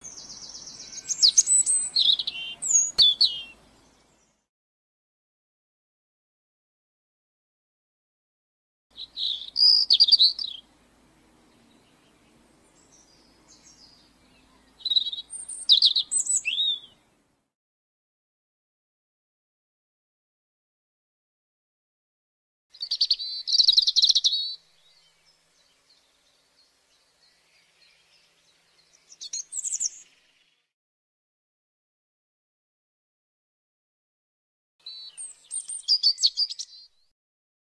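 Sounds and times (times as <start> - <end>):
robin singing: 0.0 - 4.4, 8.9 - 17.2, 22.7 - 30.6, 34.8 - 37.1.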